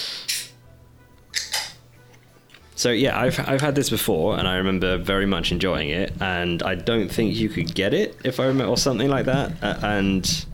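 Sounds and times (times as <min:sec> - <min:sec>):
beer can being cracked open: 0:01.3 - 0:02.8
speech: 0:02.8 - 0:10.5.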